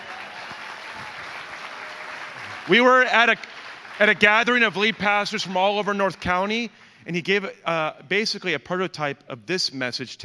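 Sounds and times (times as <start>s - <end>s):
church audience applause welcoming a speaker: 0.0s - 6.7s
speech: 2.7s - 10.2s.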